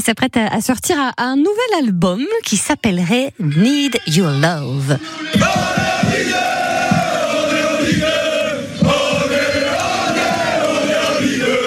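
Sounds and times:
speech: 0:00.0 - 0:06.5
rhythmic thumping beats: 0:04.9 - 0:11.6
stadium crowd cheering: 0:05.0 - 0:11.6.

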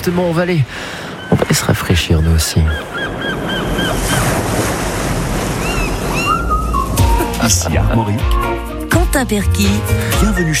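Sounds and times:
speech: 0:00.0 - 0:05.1, 0:07.4 - 0:10.5
steady roar of ocean surf: 0:00.0 - 0:08.6
seagulls crying: 0:00.7 - 0:08.6
wind blowing across the microphone: 0:03.0 - 0:07.4.

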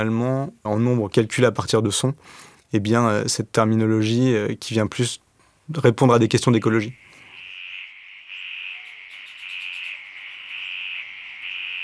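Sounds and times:
speech: 0:00.0 - 0:07.0
frogs calling around a pond after rain: 0:06.6 - 0:11.8.

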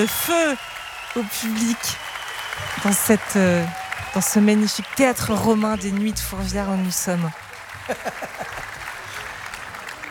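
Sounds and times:
speech: 0:00.0 - 0:02.0, 0:02.6 - 0:08.7
concert fans whooping: 0:00.0 - 0:07.2
concert fans applauding at an open-air Roman theatre: 0:00.0 - 0:10.0
laughter: 0:07.7 - 0:08.9.

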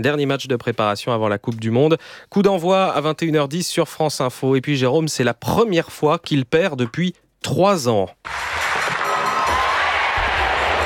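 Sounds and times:
speech: 0:00.0 - 0:08.6
stunned stadium crowd crying out in dismay: 0:08.3 - 0:10.8.

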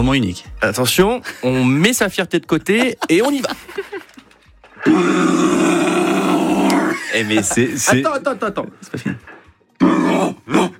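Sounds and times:
speech: 0:00.0 - 0:03.9, 0:04.8 - 0:05.8, 0:07.1 - 0:10.7
laughter: 0:02.6 - 0:04.4, 0:06.7 - 0:09.3
man imitating a red deer's rutting bellow: 0:04.8 - 0:07.1, 0:09.8 - 0:10.7.

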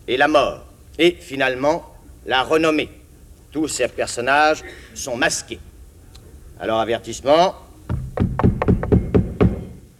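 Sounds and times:
speech: 0:00.1 - 0:05.7, 0:06.6 - 0:07.6
traditional knocks on a theatre stage before the curtain rises: 0:07.9 - 0:09.9.

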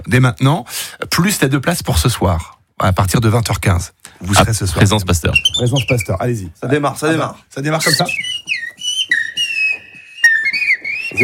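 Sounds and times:
speech: 0:00.1 - 0:08.5
human whistle imitating blackbird song: 0:07.8 - 0:11.2.

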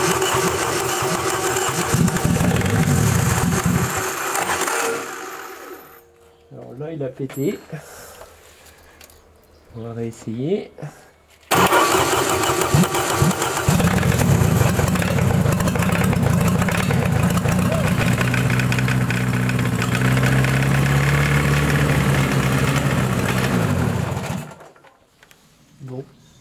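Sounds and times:
engine starting then idling unevenly: 0:00.0 - 0:05.6, 0:11.5 - 0:24.7
speech: 0:07.1 - 0:08.0, 0:09.8 - 0:11.1.

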